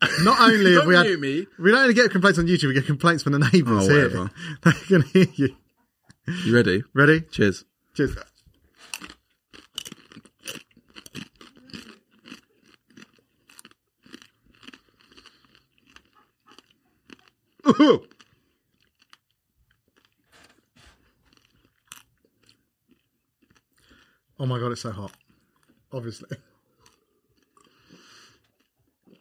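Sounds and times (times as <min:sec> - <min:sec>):
laughter: 0:00.0 - 0:01.5, 0:03.4 - 0:05.6
speech: 0:00.2 - 0:05.6, 0:06.3 - 0:08.3, 0:17.7 - 0:18.1, 0:24.4 - 0:25.2, 0:25.9 - 0:26.5
crunchy chewing of food close to the microphone: 0:08.2 - 0:29.1.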